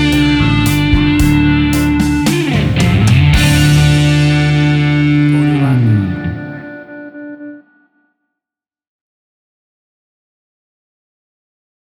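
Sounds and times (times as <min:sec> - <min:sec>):
blues music: 0:00.0 - 0:07.6.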